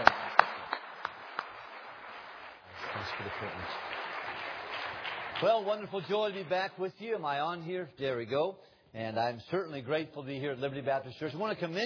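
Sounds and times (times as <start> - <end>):
hand claps from a Baptist church audience: 0.0 - 6.6
speech: 3.3 - 4.0, 5.4 - 11.8.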